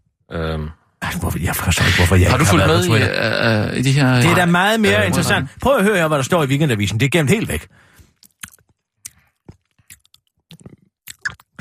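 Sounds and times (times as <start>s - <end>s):
speech: 0.3s - 7.9s
lip smacking while chewing: 8.2s - 11.6s.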